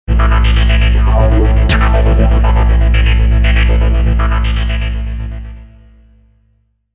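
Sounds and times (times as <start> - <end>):
deep electro trance music: 0.2 - 5.4.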